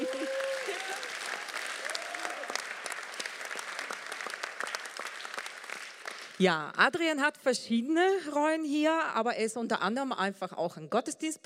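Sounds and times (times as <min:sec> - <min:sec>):
audience applause: 0:00.0 - 0:06.4
speech: 0:06.4 - 0:11.4.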